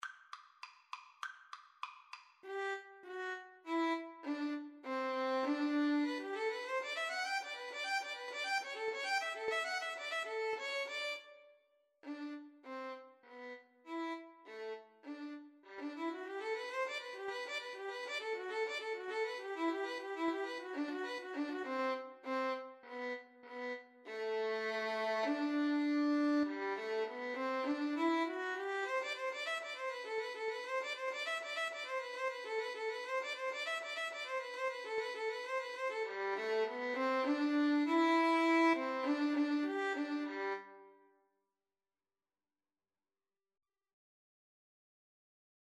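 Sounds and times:
violin in a violin and flute duet: 2.4 - 41.0.

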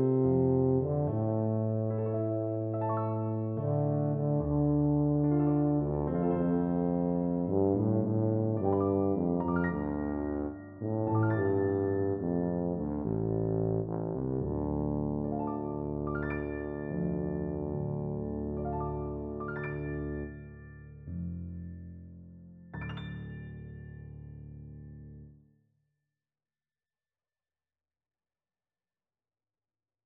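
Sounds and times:
tuba: 0.0 - 23.6.

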